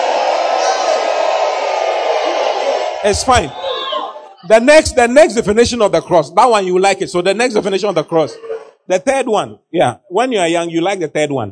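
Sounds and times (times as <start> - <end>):
audience shouting: 0.0 - 4.5
speech: 3.0 - 3.6, 4.4 - 11.5.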